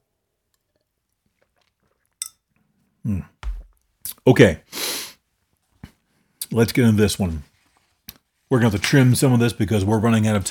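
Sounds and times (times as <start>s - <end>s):
brief slurping sip of a drink: 1.3s - 2.2s
cup or glass clinking: 2.1s - 2.5s
speech: 3.0s - 3.4s, 4.2s - 4.7s, 6.5s - 7.5s, 8.5s - 10.4s
drink set down with a heavier thunk: 3.4s - 3.8s.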